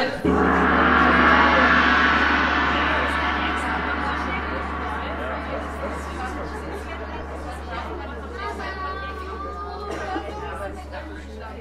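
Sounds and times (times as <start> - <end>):
gong: 0.2 - 11.5.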